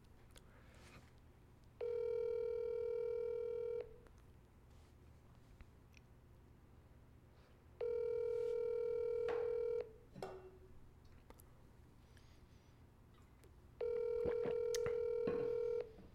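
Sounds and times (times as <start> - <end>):
outgoing phone call ringback tones: 1.8 - 4.0, 7.8 - 10.0, 13.8 - 16.0.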